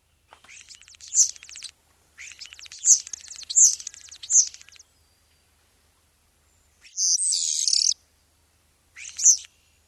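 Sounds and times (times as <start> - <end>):
starling call: 0.5 - 4.8, 6.8 - 8.0, 9.0 - 9.5.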